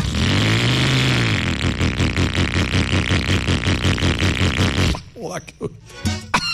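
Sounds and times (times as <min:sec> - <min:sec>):
old junk motorcycle engine revving: 0:00.0 - 0:05.0
person speaking: 0:05.1 - 0:05.9.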